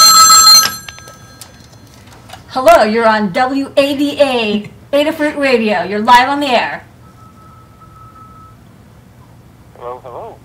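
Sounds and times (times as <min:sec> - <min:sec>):
telephone ringing: 0:00.0 - 0:02.3, 0:07.0 - 0:08.7
speech: 0:02.6 - 0:06.9.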